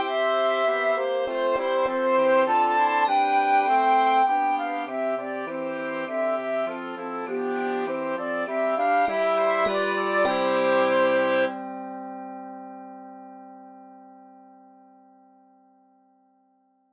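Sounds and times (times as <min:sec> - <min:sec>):
flute melody: 0:00.0 - 0:12.3.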